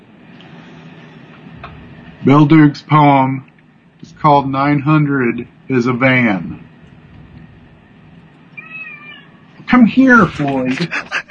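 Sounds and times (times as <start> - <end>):
low rumble: 0.0 - 11.2
speech: 1.6 - 3.5, 4.1 - 6.6, 9.9 - 11.1
cat meowing: 8.5 - 9.5
laughter: 10.1 - 11.2.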